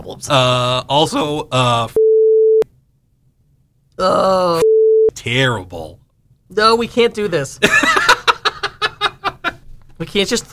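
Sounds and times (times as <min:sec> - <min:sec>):
speech: 0:00.0 - 0:02.0, 0:04.0 - 0:08.0, 0:10.0 - 0:10.5
mid-pitched censor beep: 0:02.0 - 0:02.6, 0:04.6 - 0:05.1
laughter: 0:07.6 - 0:09.6.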